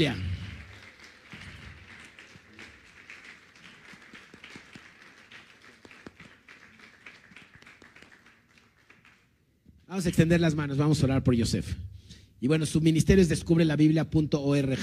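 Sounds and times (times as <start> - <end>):
speech: 0.0 - 0.2, 9.9 - 14.8
audience applause: 0.0 - 9.3.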